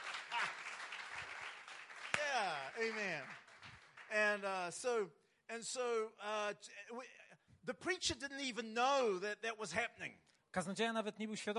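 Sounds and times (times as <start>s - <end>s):
audience clapping: 0.0s - 4.9s
speech: 2.8s - 3.4s, 4.1s - 11.5s.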